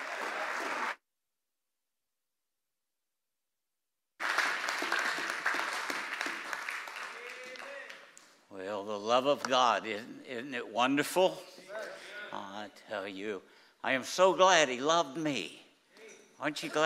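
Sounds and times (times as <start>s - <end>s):
Pacific Baptist church congregation applauding to welcome a preacher: 0.0s - 1.0s, 4.2s - 8.4s
speech: 8.8s - 15.6s, 16.4s - 16.8s.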